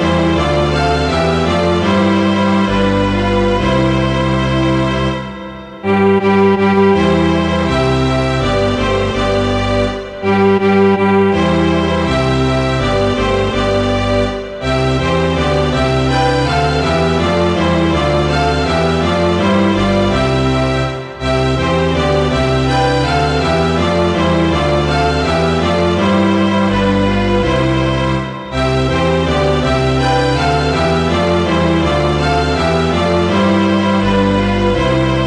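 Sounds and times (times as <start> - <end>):
string orchestra playing a folk song: 0.0 - 35.2.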